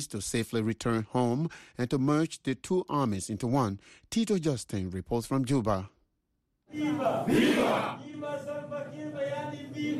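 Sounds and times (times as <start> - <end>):
speech: 0.0 - 6.0, 6.7 - 9.9
crowd cheering and shouting: 6.7 - 8.5.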